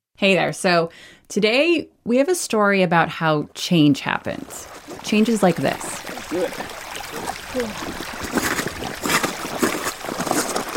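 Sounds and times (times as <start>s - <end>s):
speech: 0.2s - 6.8s, 7.6s - 8.4s
rushing meltwater river on the Greenland ice sheet: 4.6s - 10.7s.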